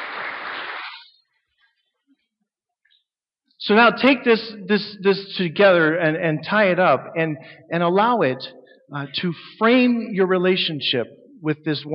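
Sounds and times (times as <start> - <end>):
audience applause: 0.0 - 1.0
speech: 3.6 - 11.9.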